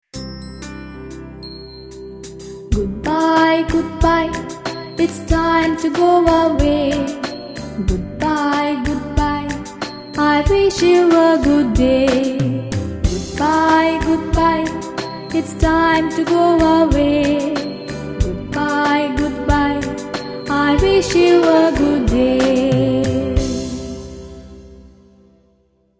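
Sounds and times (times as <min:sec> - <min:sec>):
goodbye song: 0:00.7 - 0:25.4.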